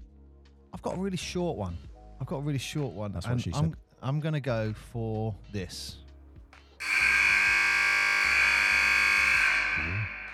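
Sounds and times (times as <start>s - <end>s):
speech: 0.8s - 6.0s
buzzer: 6.8s - 10.3s.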